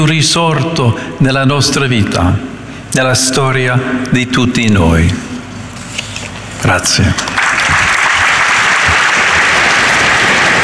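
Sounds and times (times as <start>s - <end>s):
speech: 0.0s - 5.3s, 6.6s - 7.4s
large audience applause: 7.3s - 10.6s.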